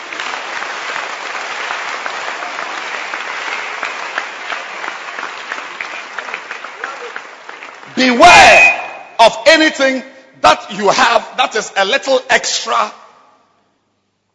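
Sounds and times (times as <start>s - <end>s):
crowd clapping: 0.0s - 8.3s
speech: 8.0s - 13.0s.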